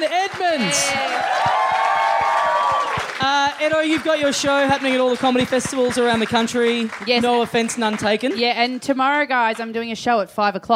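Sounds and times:
speech: 0.0 - 1.6, 3.2 - 10.7
live audience applauding: 0.0 - 9.7
audience whoops: 0.6 - 3.1.

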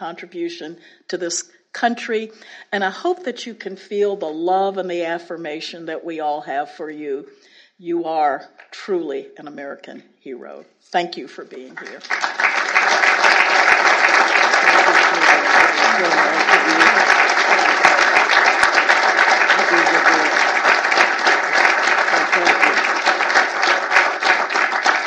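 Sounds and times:
speech: 0.0 - 12.6, 13.4 - 17.1
audience applause: 11.8 - 25.0.

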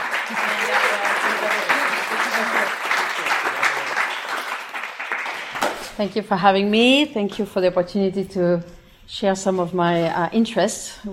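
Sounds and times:
round of applause: 0.0 - 6.0
speech: 6.0 - 11.1.

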